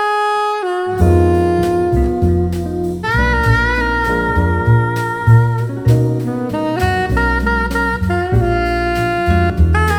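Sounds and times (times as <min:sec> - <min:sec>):
jazz music: 0:00.0 - 0:09.9.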